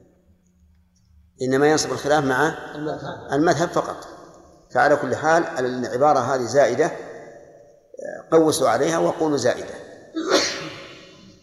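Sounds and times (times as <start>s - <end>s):
speech: 1.4s - 7.1s, 8.3s - 10.6s
sneeze: 10.2s - 11.4s.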